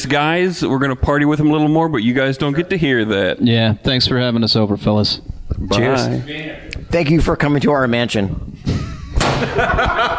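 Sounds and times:
speech: 0.0 - 8.8
microphone dropped on the floor: 8.6 - 9.6
laughter: 8.7 - 10.1.

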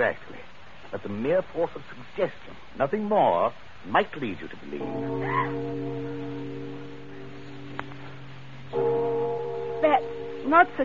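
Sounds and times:
speech: 0.0 - 0.3, 0.9 - 6.1, 10.5 - 10.8
church bell ringing in belfry: 4.8 - 10.8.

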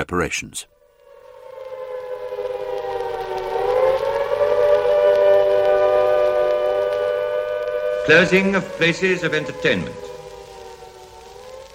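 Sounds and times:
speech: 0.0 - 0.8, 8.0 - 10.1
air raid sirens wailing: 0.7 - 11.7.

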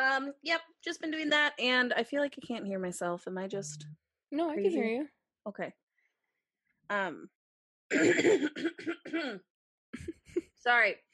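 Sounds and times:
speech: 0.2 - 5.8, 6.9 - 11.1
person clearing their throat: 7.9 - 9.4.

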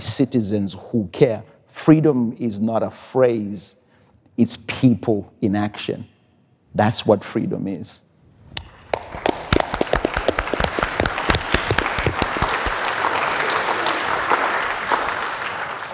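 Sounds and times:
speech: 0.2 - 3.8, 4.4 - 6.1, 6.8 - 8.1
audience applause: 8.9 - 15.9.

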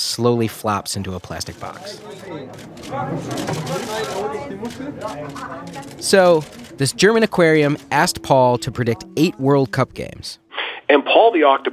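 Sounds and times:
speech: 0.2 - 11.7
media crowd murmuring: 1.6 - 9.8
camera shutters clicking: 2.1 - 6.8.

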